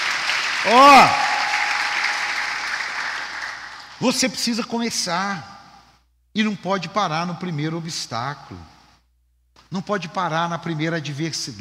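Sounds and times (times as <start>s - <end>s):
audience applause: 0.0s - 4.0s
speech: 0.6s - 1.3s, 4.0s - 5.5s, 6.4s - 8.7s, 9.7s - 11.6s.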